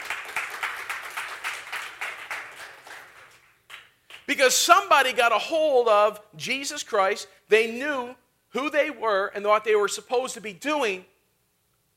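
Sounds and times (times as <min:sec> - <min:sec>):
audience clapping: 0:00.0 - 0:04.4
speech: 0:04.3 - 0:11.1.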